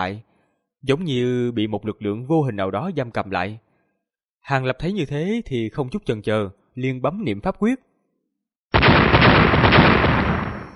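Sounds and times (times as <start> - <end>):
speech: 0.0 - 3.6, 4.4 - 7.9
violent explosion sound effect: 8.8 - 10.7.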